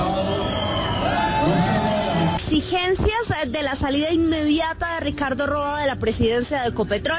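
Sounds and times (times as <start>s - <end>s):
crowd booing and jeering at the Ecopetrol shareholders' assembly in Corferias, Bogotá: 0.0s - 2.6s
speech: 2.5s - 7.1s.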